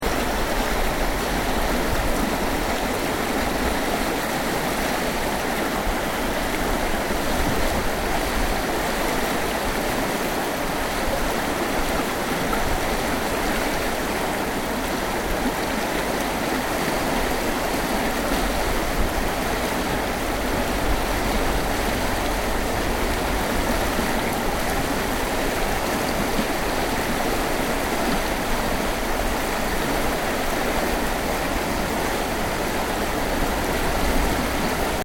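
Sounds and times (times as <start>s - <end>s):
fast flowing river water: 0.0s - 35.0s.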